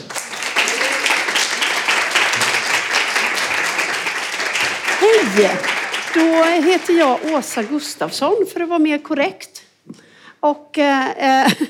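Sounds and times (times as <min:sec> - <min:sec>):
warm applause: 0:00.0 - 0:08.1
speech: 0:05.1 - 0:09.6, 0:10.4 - 0:11.6.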